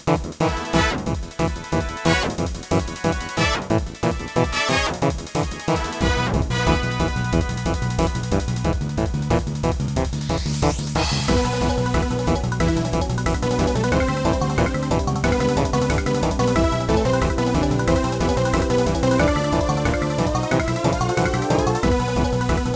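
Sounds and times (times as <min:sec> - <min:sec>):
battle music: 0:00.2 - 0:22.7.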